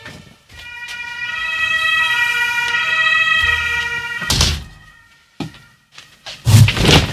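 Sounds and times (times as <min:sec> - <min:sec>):
fire truck sirens beside a radio studio next to the fire station: 0:00.0 - 0:06.2.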